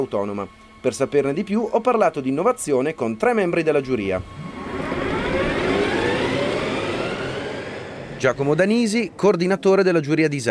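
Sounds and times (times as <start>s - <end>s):
speech: 0.0s - 4.5s, 8.2s - 10.4s
electric Formula SAE race car motor whine: 0.0s - 9.1s
rushing road noise of an electric Formula SAE race car: 3.8s - 10.2s.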